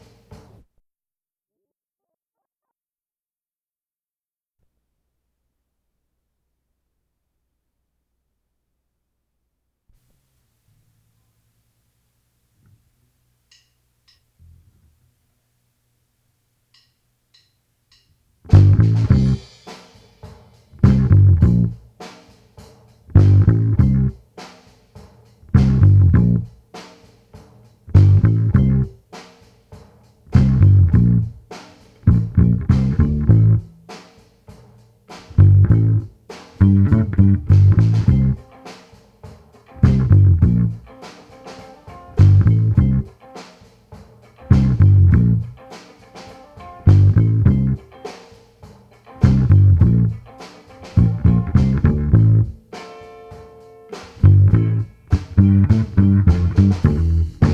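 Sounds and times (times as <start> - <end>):
bass: 18.5 - 19.6, 20.8 - 22.0, 23.1 - 24.3, 25.4 - 26.7, 27.9 - 29.0, 30.3 - 34.0, 35.2 - 38.4, 39.8 - 40.9, 42.1 - 43.1, 44.5 - 45.6, 46.8 - 47.9, 49.2 - 52.7, 54.1 - 57.5.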